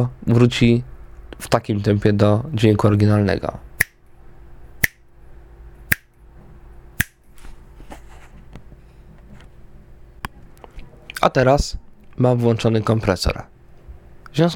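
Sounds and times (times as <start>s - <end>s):
speech: 0.0s - 3.6s, 11.2s - 13.6s, 14.3s - 14.5s
low steady hum: 0.0s - 14.5s
finger snapping: 4.8s - 5.0s, 7.0s - 7.2s.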